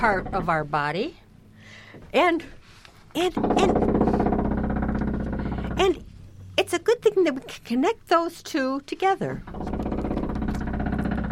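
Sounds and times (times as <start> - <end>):
jackhammer pounding outside the wall: 0.0 - 0.5, 3.2 - 6.9, 9.4 - 11.3
speech: 0.0 - 3.8, 5.8 - 6.1, 6.7 - 9.7.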